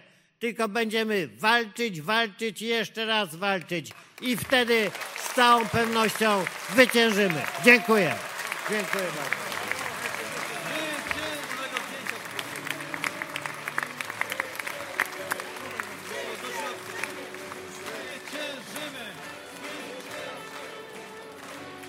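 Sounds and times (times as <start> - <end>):
speech: 0.4 - 9.4
audience applause after a speech: 4.2 - 21.8
crowd noise and scattered voices: 8.5 - 21.8.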